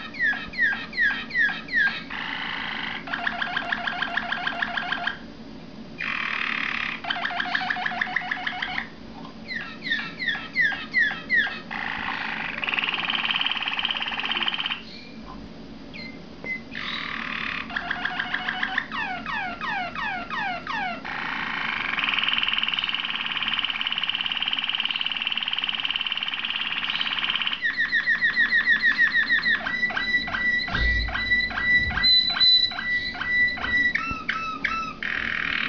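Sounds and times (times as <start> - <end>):
Waterslager canary song: 0.0 - 5.3, 6.0 - 35.6.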